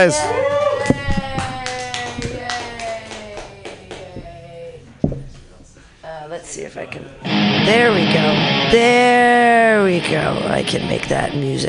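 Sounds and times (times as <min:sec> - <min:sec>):
speech: 0:00.0 - 0:01.0, 0:06.8 - 0:11.6
audience clapping: 0:00.8 - 0:04.1.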